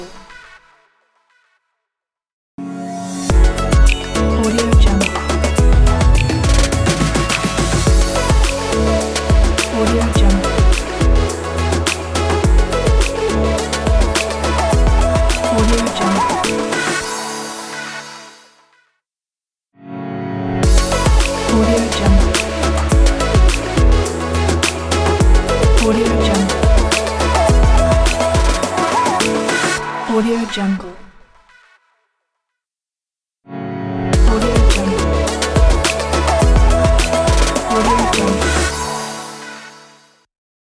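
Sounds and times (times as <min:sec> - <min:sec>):
commercial modern pop logo jingle: 0:03.1 - 0:18.2, 0:20.6 - 0:30.1, 0:34.1 - 0:39.9.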